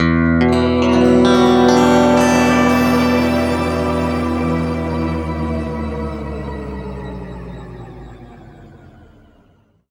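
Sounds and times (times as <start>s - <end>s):
guitar chords in E: 0.0s - 8.2s.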